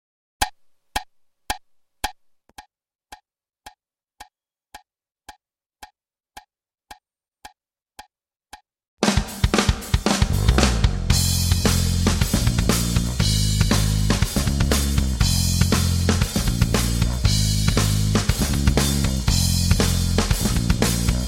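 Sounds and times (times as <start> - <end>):
90s rock music: 9.1 - 21.2.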